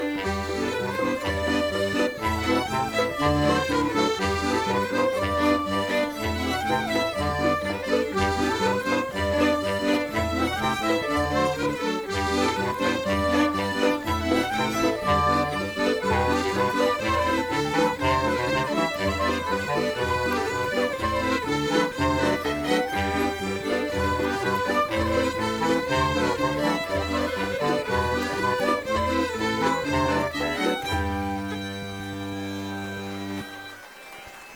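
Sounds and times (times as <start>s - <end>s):
bourree carree folk dance music: 0.0s - 34.5s.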